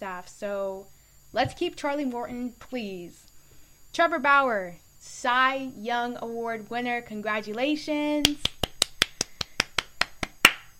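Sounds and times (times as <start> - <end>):
speech: 0.0 - 3.3, 3.9 - 8.6
hand claps: 8.2 - 10.7.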